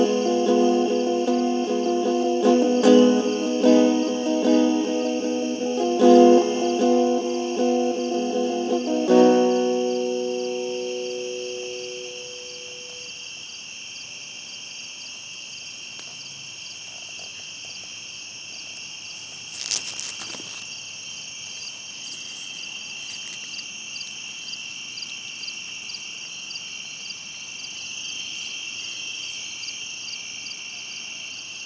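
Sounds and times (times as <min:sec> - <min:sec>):
cricket chorus trilling: 0:00.0 - 0:31.6
faint hiss: 0:00.0 - 0:31.6
rustling: 0:19.2 - 0:20.8, 0:21.6 - 0:23.6.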